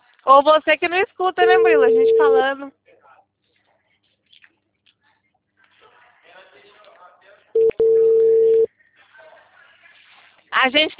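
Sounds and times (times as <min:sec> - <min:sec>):
speech: 0:00.3 - 0:02.8, 0:10.6 - 0:10.9
ringback tone of an outgoing telephone call ending in voicemail: 0:01.5 - 0:02.5, 0:07.6 - 0:08.7.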